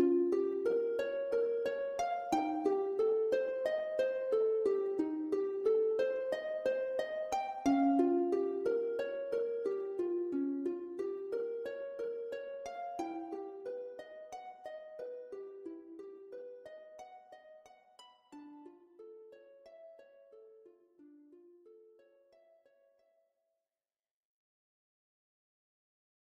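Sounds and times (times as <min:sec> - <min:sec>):
virtual harp: 0:00.0 - 0:22.6.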